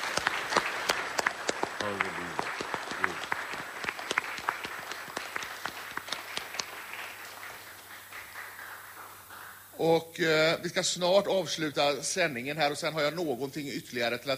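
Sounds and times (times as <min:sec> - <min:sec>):
audience applause: 0:00.0 - 0:09.8
speech: 0:09.8 - 0:14.3.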